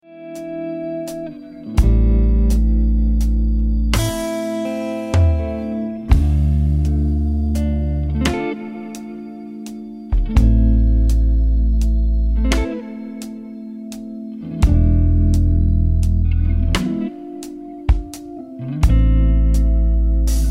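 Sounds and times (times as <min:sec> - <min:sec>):
music loop at 85 BPM in A minor: 0:00.3 - 0:20.4.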